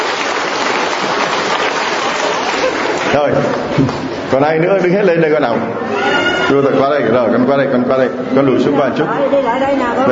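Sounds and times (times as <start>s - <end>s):
audience applause: 0.0s - 4.1s
speech: 3.1s - 10.1s.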